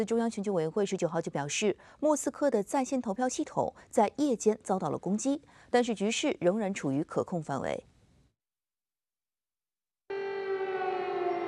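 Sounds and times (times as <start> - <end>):
speech: 0.0 - 7.9
air raid siren: 10.1 - 11.4.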